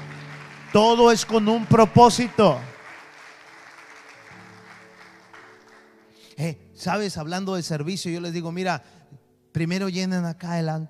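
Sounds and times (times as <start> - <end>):
audience applause: 0.0 - 6.2
speech: 0.7 - 2.7, 6.4 - 10.8.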